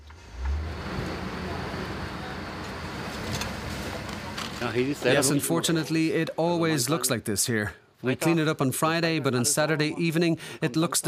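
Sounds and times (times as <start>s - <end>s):
truck engine while turning onto street: 0.0s - 5.3s
speech: 4.6s - 11.0s.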